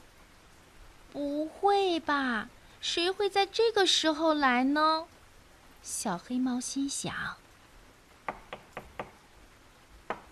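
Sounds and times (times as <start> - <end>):
speech: 1.1 - 5.1, 5.8 - 7.4
knocking on a door: 8.2 - 9.2, 10.1 - 10.3.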